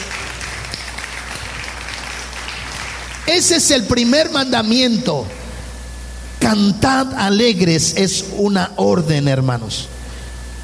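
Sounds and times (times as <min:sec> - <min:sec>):
audience applause: 0:00.0 - 0:03.3
speech: 0:03.3 - 0:05.4, 0:06.5 - 0:10.0.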